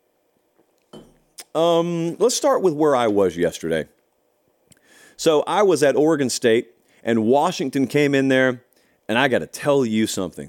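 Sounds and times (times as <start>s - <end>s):
glass chalice clinking: 0.9s - 1.2s
speech: 1.5s - 4.0s, 5.2s - 10.4s.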